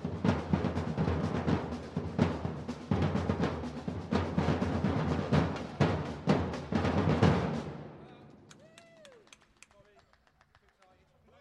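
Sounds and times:
samba band playing: 0.0s - 8.1s.

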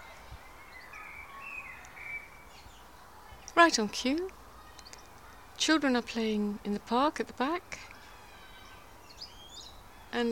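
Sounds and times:
blackbird singing: 0.0s - 4.0s, 7.9s - 10.3s
speech: 3.6s - 4.4s, 5.6s - 7.9s, 10.1s - 10.3s.

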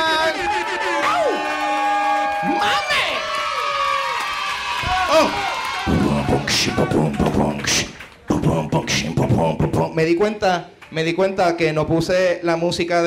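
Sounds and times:
crowd cheering and whooping: 0.0s - 7.2s
applause: 0.1s - 8.3s, 10.7s - 11.0s
speech: 5.1s - 5.4s, 6.6s - 8.0s, 8.6s - 13.0s.

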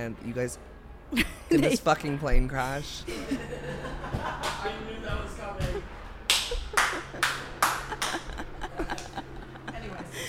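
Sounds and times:
speech: 0.0s - 5.9s
laughter: 3.0s - 10.2s
person clapping: 6.3s - 9.2s.

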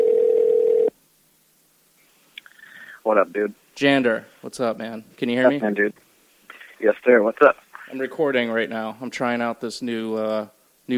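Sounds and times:
telephone ringing tone: 0.0s - 0.9s
speech: 3.1s - 6.0s, 6.8s - 10.9s.

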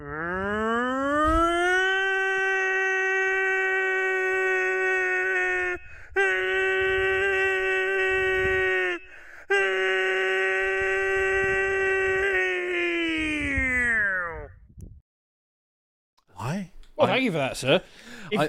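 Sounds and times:
human voice imitating a tornado siren: 0.0s - 14.7s
speech: 17.3s - 18.4s.

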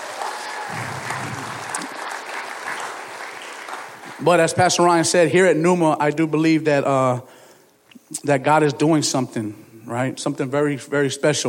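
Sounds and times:
audience round of applause: 0.0s - 4.6s
speech: 4.2s - 7.3s, 8.2s - 11.4s.

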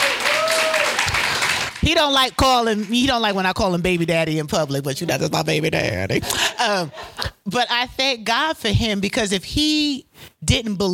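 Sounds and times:
person whooping: 0.0s - 1.1s
conference audience applause for the speaker's husband: 0.0s - 1.8s
speech: 1.9s - 10.9s.

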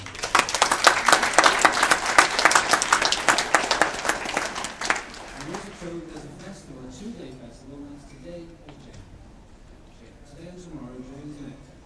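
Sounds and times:
crowd applauding: 0.0s - 6.2s.

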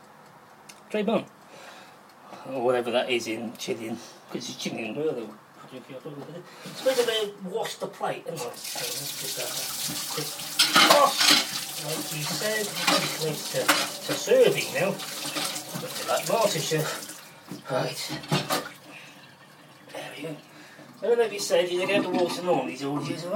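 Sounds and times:
speech: 0.9s - 1.4s, 2.4s - 17.1s, 17.7s - 18.6s, 20.2s - 23.3s
tap water running into a sink: 8.4s - 19.9s
plate clinking and scraping while washed: 10.5s - 14.3s.

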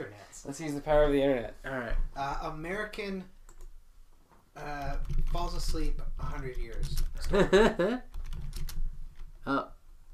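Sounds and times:
speech: 0.0s - 3.4s, 4.6s - 8.2s, 9.4s - 9.8s
computer keyboard typing: 3.4s - 3.7s, 4.7s - 9.3s.

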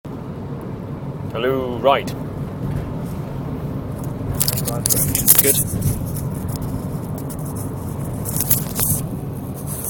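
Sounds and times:
car being driven home, rumble and road hiss: 0.1s - 9.8s
speech: 1.3s - 2.8s, 4.7s - 6.2s
brief scraping noises: 4.4s - 9.8s.

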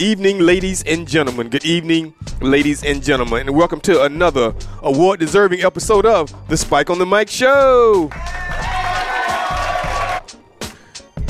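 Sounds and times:
speech: 0.0s - 8.7s
audience clapping: 8.1s - 10.2s.

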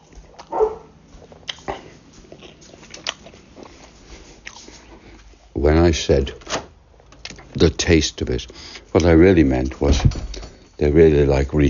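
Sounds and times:
dog yelping: 0.4s - 1.0s
speech: 5.9s - 6.5s, 7.6s - 11.6s
clicks and thumps: 9.8s - 10.6s.

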